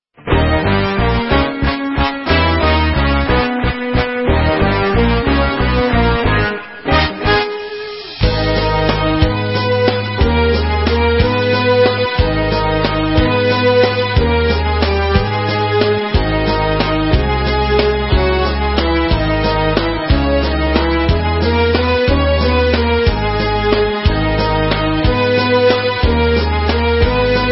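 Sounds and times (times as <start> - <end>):
instrumental Israeli dance music: 0.5 - 27.5.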